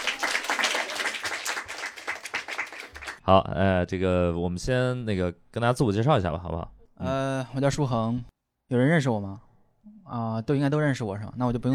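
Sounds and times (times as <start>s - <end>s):
audience applause welcoming guests: 0.0s - 3.2s
speech: 3.2s - 11.7s.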